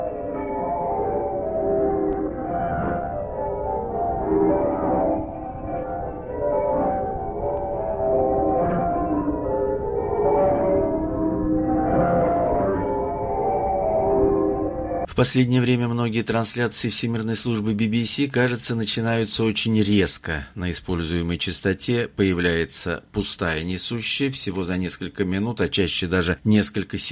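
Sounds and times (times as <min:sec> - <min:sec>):
church bells radio interval signal: 0:00.0 - 0:15.1
speech: 0:15.2 - 0:27.1.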